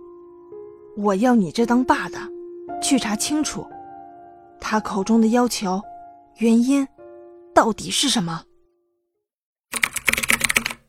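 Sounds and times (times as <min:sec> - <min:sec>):
speech: 0:01.0 - 0:03.8, 0:04.6 - 0:07.0, 0:07.6 - 0:08.5
fast typing on a computer keyboard: 0:09.7 - 0:10.8.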